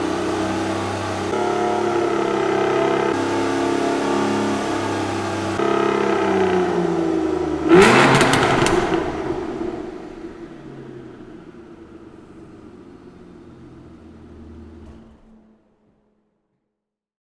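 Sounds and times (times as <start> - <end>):
Aston Martin DB9 exhaust with secondary cat delete: 0.0 - 16.2.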